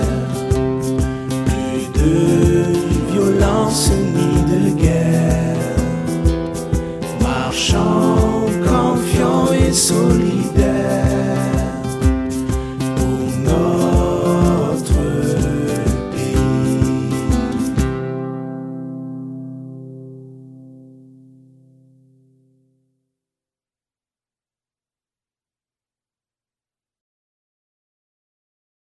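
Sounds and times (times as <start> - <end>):
traditional anthem: 0.0 - 18.3.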